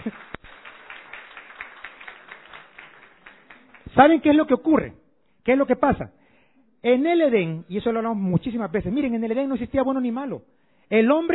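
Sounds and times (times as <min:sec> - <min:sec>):
audience applauding: 0:00.0 - 0:04.5
speech: 0:04.0 - 0:06.2, 0:06.8 - 0:11.3.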